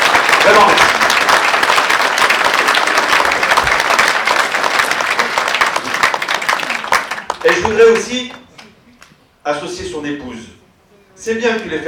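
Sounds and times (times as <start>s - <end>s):
audience applauding loudly: 0.0s - 8.8s
speech: 0.4s - 1.0s, 7.7s - 8.4s, 9.5s - 10.6s, 11.2s - 11.8s.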